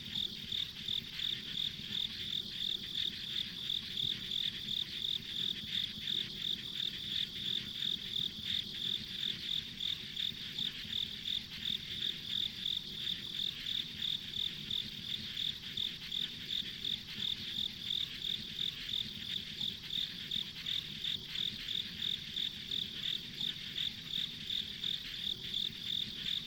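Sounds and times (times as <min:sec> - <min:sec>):
high pulsing insect chirp: 0:00.0 - 0:26.4.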